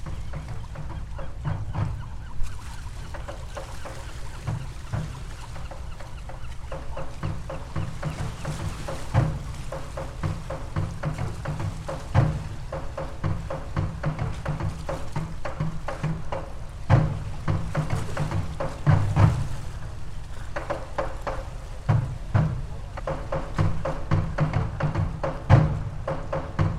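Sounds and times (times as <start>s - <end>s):
faint bird-like calls: 0.0s - 10.6s
creaky boat rocking on the water: 0.0s - 26.7s.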